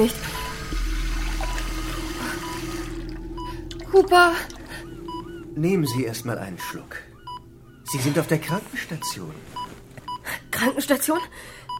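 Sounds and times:
speech: 0:00.0 - 0:00.4, 0:03.9 - 0:04.6, 0:05.6 - 0:07.1, 0:07.9 - 0:09.6, 0:10.6 - 0:11.6
water pouring into a glass: 0:00.0 - 0:05.5
low hum: 0:00.0 - 0:11.7.

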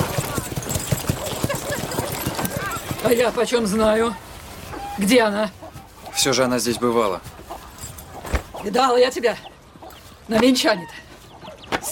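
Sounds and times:
horse hooves clip-clopping: 0:00.0 - 0:04.5, 0:05.6 - 0:09.1
speech: 0:03.0 - 0:04.2, 0:05.0 - 0:05.6, 0:06.2 - 0:07.3, 0:08.6 - 0:09.5, 0:10.3 - 0:11.0.

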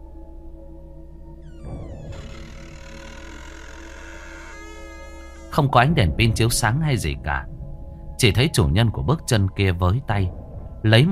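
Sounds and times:
wardrobe door slowly creaking open: 0:01.4 - 0:05.8
speech: 0:05.6 - 0:07.5, 0:08.2 - 0:11.0.

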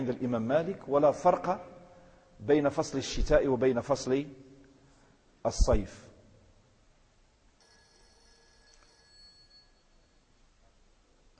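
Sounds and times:
speech: 0:00.0 - 0:01.7, 0:02.4 - 0:04.4, 0:05.4 - 0:06.1
constant low hiss: 0:00.0 - 0:11.3
telephone ringing with a bright electronic tone: 0:07.6 - 0:10.2.

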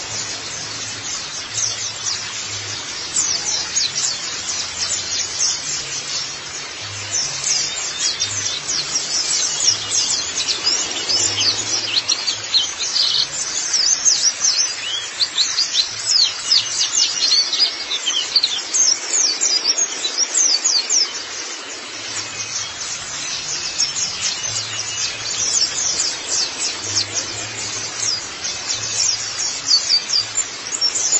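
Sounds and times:
white-eye twittering song: 0:00.0 - 0:31.1.

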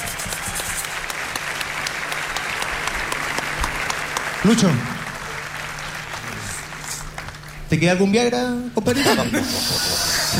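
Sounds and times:
studio audience applauding during a Chilean television comedy show: 0:00.0 - 0:08.1
speech: 0:04.4 - 0:04.9, 0:07.7 - 0:10.3
laughter: 0:08.9 - 0:10.3.

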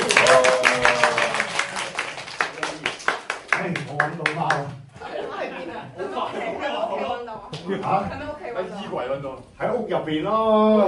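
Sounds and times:
hand clapping: 0:00.0 - 0:04.7
laughter: 0:05.0 - 0:07.4
speech: 0:07.9 - 0:10.8.

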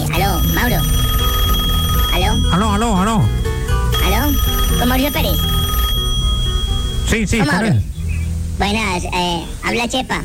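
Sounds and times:
telephone ringing during a call: 0:00.1 - 0:07.6
speech: 0:02.6 - 0:03.4, 0:04.3 - 0:05.6, 0:07.1 - 0:07.9, 0:08.6 - 0:10.2.

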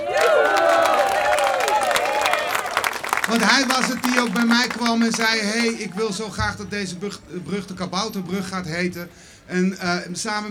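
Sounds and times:
crowd clapping at the unveiling of the Kabouterbrug bridge: 0:00.0 - 0:07.3
crowd cheering at the unveiling of the Kabouterbrug bridge: 0:00.0 - 0:09.1
laughter: 0:00.0 - 0:09.2
speech: 0:03.4 - 0:10.4.

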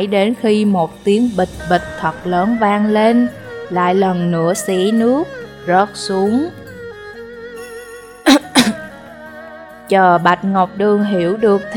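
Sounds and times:
speech: 0:00.0 - 0:06.6, 0:09.9 - 0:11.7
dry coughing: 0:08.3 - 0:08.9.

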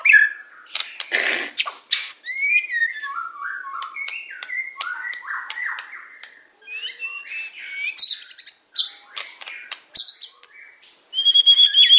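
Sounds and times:
songbird chirps and trills: 0:00.0 - 0:11.9.

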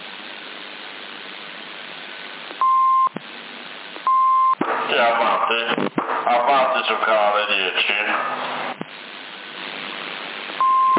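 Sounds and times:
radio static: 0:00.0 - 0:10.9
CB radio beep: 0:02.6 - 0:03.2, 0:04.0 - 0:06.0, 0:10.6 - 0:10.9
speech: 0:05.0 - 0:08.4.

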